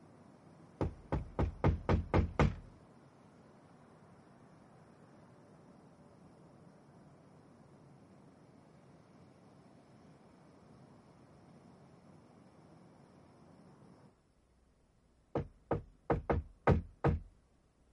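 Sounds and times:
knocking on a door: 0:00.8 - 0:02.7, 0:15.3 - 0:17.3.

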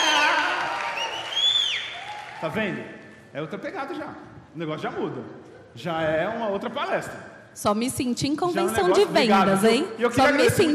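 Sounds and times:
audience applause: 0:00.0 - 0:02.8
speech: 0:02.4 - 0:10.7.

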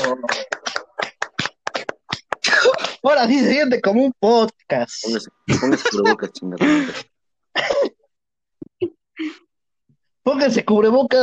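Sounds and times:
hand clapping applause: 0:00.0 - 0:03.0
speech: 0:03.0 - 0:08.0, 0:10.3 - 0:11.2
laughter: 0:05.5 - 0:07.1.

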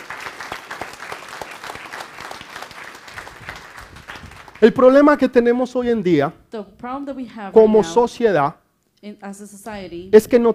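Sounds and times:
audience applause: 0:00.0 - 0:05.0
speech: 0:04.6 - 0:10.5.

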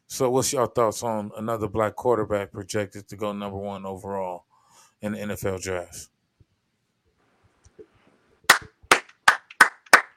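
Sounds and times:
speech: 0:00.1 - 0:06.2
sharp hand claps: 0:08.5 - 0:10.1.

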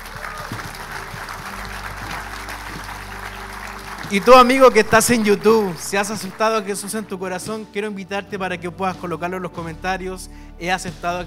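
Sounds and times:
church audience applause: 0:00.0 - 0:07.2
speech: 0:04.1 - 0:11.2.

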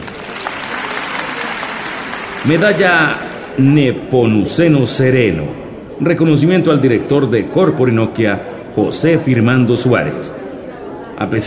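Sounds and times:
audience applause: 0:00.0 - 0:03.8
speech: 0:02.4 - 0:10.4, 0:11.2 - 0:11.4.

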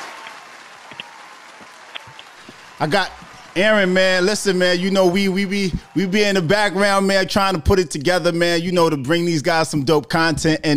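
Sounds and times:
applause: 0:00.0 - 0:07.2
speech: 0:02.8 - 0:10.7.

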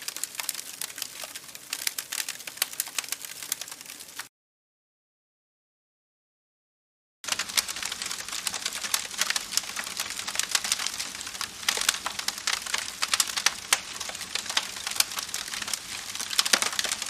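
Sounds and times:
campfire crackling: 0:00.0 - 0:04.3, 0:07.2 - 0:17.0.

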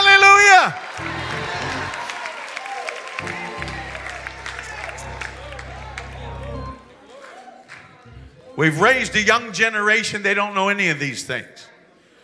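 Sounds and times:
crowd cheering with excited shouting voices: 0:00.0 - 0:09.2
crowd clapping: 0:00.6 - 0:08.3
low rumbling hum: 0:03.2 - 0:06.9, 0:08.1 - 0:09.3
speech: 0:08.6 - 0:11.7.

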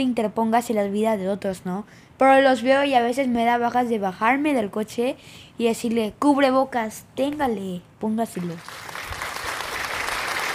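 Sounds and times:
speech: 0:00.0 - 0:09.0
applause: 0:08.4 - 0:10.5.

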